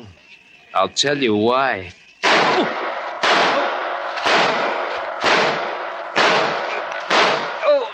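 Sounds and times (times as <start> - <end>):
speech: 0.7 - 2.8
gunshot sound effect: 2.2 - 7.9.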